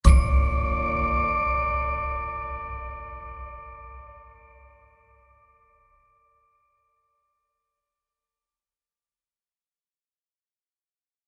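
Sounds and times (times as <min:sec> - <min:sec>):
sci-fi impact: 0:00.0 - 0:05.3.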